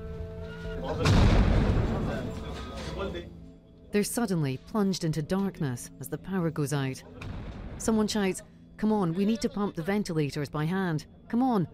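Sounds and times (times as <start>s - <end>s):
speech: 0.8s - 1.2s, 3.0s - 11.7s
artillery shell exploding: 1.0s - 2.1s.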